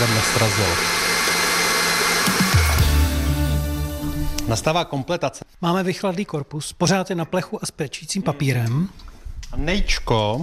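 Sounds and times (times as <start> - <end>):
speech: 0.0 - 1.1, 4.5 - 10.4
electric mixer whipping cream: 0.0 - 4.4.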